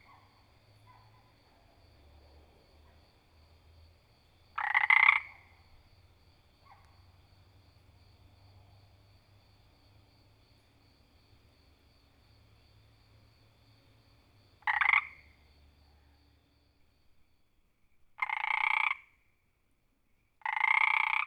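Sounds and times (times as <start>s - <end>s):
frog giving loud rasping croaks: 2.1s - 7.6s, 14.6s - 15.5s, 18.2s - 19.2s, 20.4s - 21.2s.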